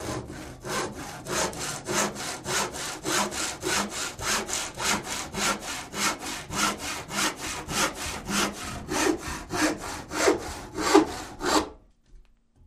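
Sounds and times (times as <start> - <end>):
hand saw cutting wood: 0.0 - 11.8.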